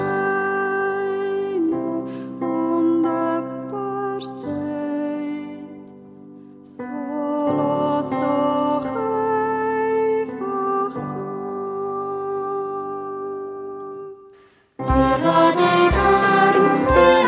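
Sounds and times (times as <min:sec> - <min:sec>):
piano: 0:00.0 - 0:17.2
violin: 0:14.8 - 0:17.2
flugelhorn: 0:14.9 - 0:17.2
pan flute: 0:14.9 - 0:17.2.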